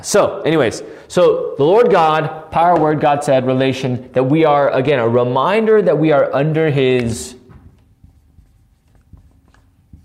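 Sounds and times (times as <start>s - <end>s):
speech: 0.0s - 7.4s
marker writing on a whiteboard: 6.8s - 10.0s.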